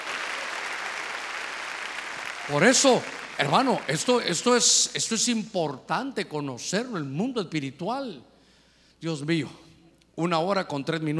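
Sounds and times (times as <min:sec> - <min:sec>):
audience clapping: 0:00.0 - 0:04.7
speech: 0:02.5 - 0:08.3, 0:09.0 - 0:09.6, 0:10.2 - 0:11.1.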